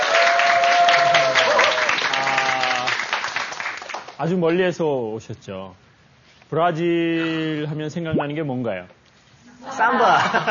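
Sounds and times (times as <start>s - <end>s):
audience applause: 0.0s - 4.2s
speech: 4.2s - 5.8s, 6.5s - 9.0s, 9.6s - 10.5s
laughter: 9.6s - 10.5s.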